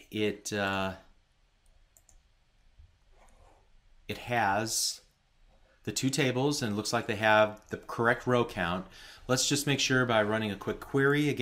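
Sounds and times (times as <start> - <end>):
speech: 0.1 - 1.0, 4.1 - 5.0, 5.8 - 11.4
computer mouse clicks on a Login button: 1.6 - 2.3.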